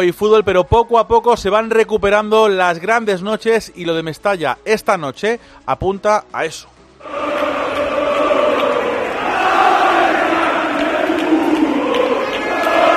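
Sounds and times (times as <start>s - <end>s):
speech: 0.0s - 7.6s
large crowd of football fans roaring outside a stadium: 7.0s - 12.9s.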